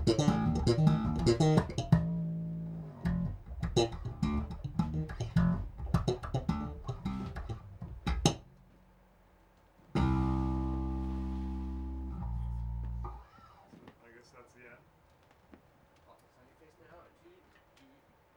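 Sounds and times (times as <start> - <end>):
bass solo: 0.0 - 8.6, 9.9 - 13.3.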